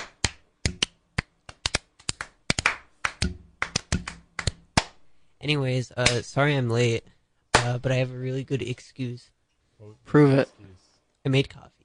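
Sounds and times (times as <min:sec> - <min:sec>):
hand clapping: 0:00.0 - 0:05.0, 0:07.5 - 0:07.8
speech: 0:05.4 - 0:11.8.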